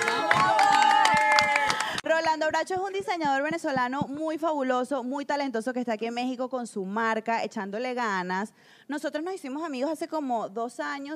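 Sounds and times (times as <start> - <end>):
cheering and excited voices: 0.0 - 2.0
group hand clapping: 0.0 - 3.4
speech: 2.4 - 11.1.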